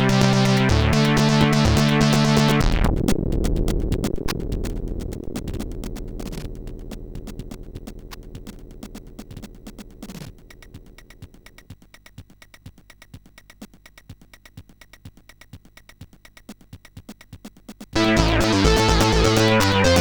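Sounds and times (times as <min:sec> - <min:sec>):
chiptune melody on SID 8580R5 chip: 0:00.0 - 0:11.6, 0:18.0 - 0:19.9.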